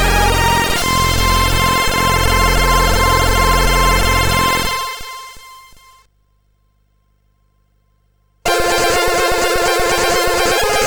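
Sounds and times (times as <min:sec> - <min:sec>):
high trance synth on CSG8580R5 chip: 0:00.0 - 0:05.6, 0:08.5 - 0:10.8.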